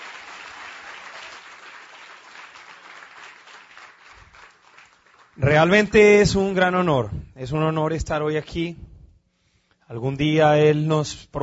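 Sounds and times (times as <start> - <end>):
audience applause: 0.0 - 5.8
speech: 5.4 - 8.8, 9.9 - 11.4.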